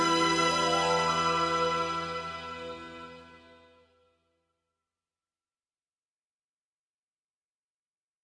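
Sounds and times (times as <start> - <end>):
instrumental music: 0.0 - 4.0.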